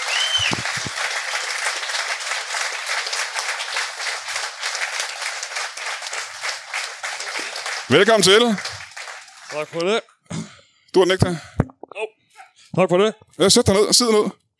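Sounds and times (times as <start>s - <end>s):
television studio audience applauding a guest: 0.0s - 9.9s
speech: 7.9s - 8.8s, 9.5s - 10.1s, 10.9s - 11.5s, 12.8s - 14.4s.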